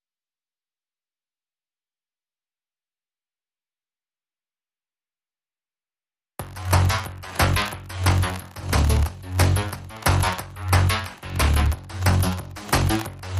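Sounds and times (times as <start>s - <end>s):
synth: 6.4s - 13.3s.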